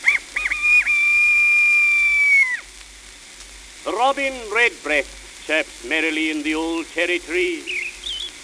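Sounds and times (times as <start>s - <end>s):
bantam rooster's shrill crow: 0.0s - 2.7s
speech: 4.0s - 7.8s.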